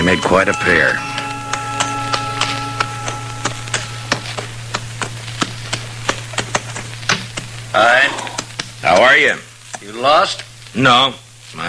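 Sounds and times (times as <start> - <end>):
constant low hum: 0.0 - 9.7
horse hooves clopping: 0.0 - 9.9
speech: 0.1 - 1.1, 8.8 - 11.6.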